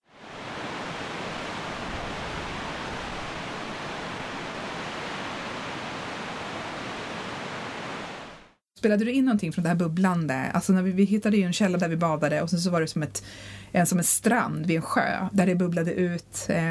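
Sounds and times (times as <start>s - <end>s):
large waterfall roaring: 0.0s - 8.6s
speech: 8.8s - 16.6s.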